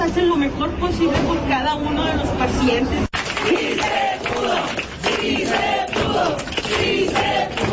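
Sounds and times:
speech: 0.1s - 5.7s
audience applause: 3.1s - 7.7s.

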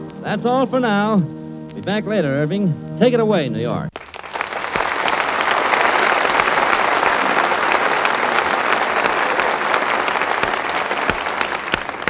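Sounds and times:
speech: 0.3s - 4.0s
audience applause: 3.9s - 12.0s.

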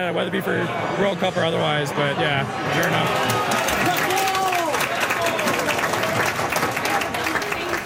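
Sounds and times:
speech: 0.0s - 3.9s
soccer fans cheering in the Sir John A. Pub on Elgin Street: 2.7s - 7.8s.

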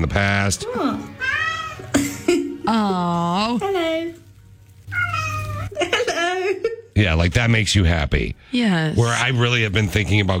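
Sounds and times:
speech: 0.0s - 4.2s, 6.4s - 10.3s
recorded cat giving a long tonal meow: 0.9s - 2.0s, 4.8s - 5.8s.

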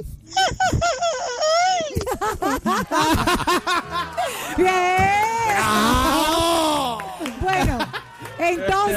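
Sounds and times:
laughter: 0.4s - 8.9s
man imitating a singer's signature yell: 5.6s - 7.2s.

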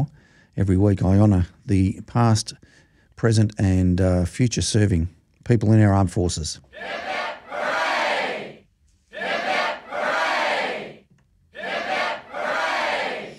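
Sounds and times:
speech: 0.0s - 7.8s
crowd giving three cheers: 6.8s - 8.6s, 9.2s - 11.0s, 11.6s - 13.3s.

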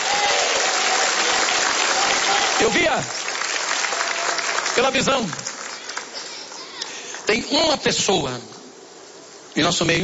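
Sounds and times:
evangelical church congregation applause: 0.0s - 7.4s
speech: 2.6s - 3.2s, 4.8s - 5.5s, 7.3s - 8.6s, 9.6s - 10.0s.

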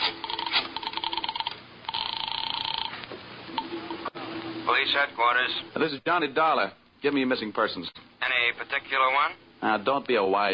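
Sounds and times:
telephone line ringing: 0.2s - 4.1s
speech: 4.7s - 10.5s.

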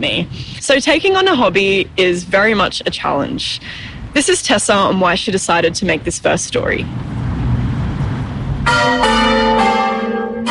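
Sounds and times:
speech: 0.0s - 7.2s
low rumbling noise: 0.0s - 10.4s
church bells ringing: 8.6s - 10.4s.

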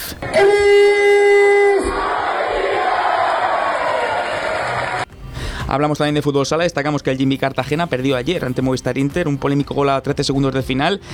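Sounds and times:
football fans cheering and shouting celebrating promotion: 0.2s - 5.1s
football fans chanting: 1.7s - 5.0s
speech: 5.7s - 11.1s.

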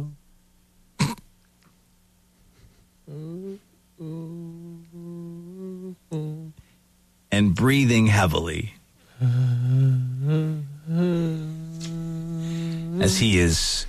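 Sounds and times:
throaty cough: 1.0s - 1.3s
voice imitating moaning with low groans: 3.1s - 6.6s, 9.2s - 13.2s
speech: 7.6s - 9.3s, 13.0s - 13.8s.

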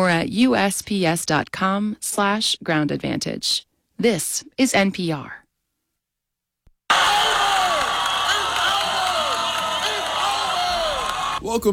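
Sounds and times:
speech: 0.0s - 5.4s, 11.4s - 11.7s
students cheering a classmate at the 2026 Dunkman World Championship in Moody: 6.9s - 11.4s.

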